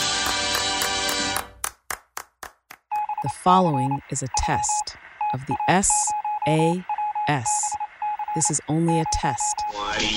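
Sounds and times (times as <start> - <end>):
clapping: 0.0 - 3.0
speech: 3.2 - 7.8, 8.4 - 10.1.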